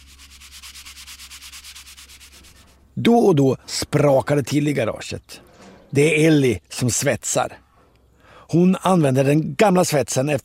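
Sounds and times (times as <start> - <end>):
filler being sanded down on a repair in a garage: 0.0 - 2.8
speech: 3.0 - 7.6, 8.5 - 10.4.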